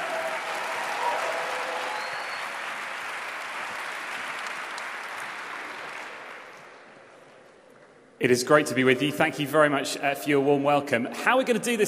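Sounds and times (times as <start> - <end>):
audience applauding guest speakers at a morning seminar: 0.0 - 6.9
speech: 8.2 - 11.8.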